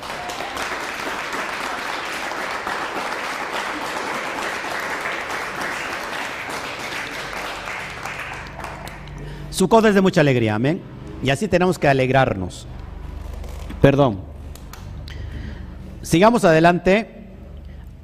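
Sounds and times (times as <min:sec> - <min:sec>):
audience applause: 0:00.0 - 0:09.2
speech: 0:09.6 - 0:12.8, 0:13.8 - 0:14.3, 0:16.1 - 0:17.2.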